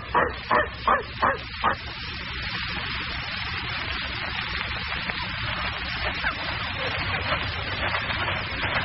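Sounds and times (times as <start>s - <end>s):
dog barking: 0.0s - 1.8s
steady low hum and hiss: 0.0s - 8.8s.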